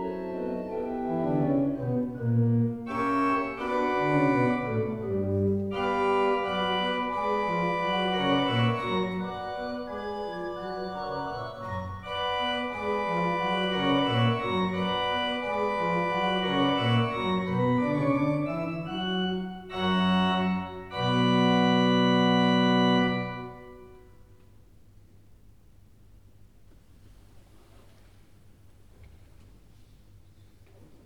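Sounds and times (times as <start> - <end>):
organ prelude in B minor: 0.0 - 24.3.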